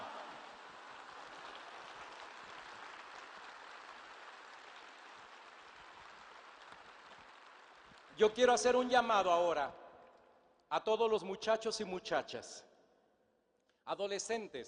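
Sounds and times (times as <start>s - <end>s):
audience applause: 0.0s - 8.2s
speech: 8.2s - 9.8s, 10.7s - 12.7s, 13.9s - 14.6s.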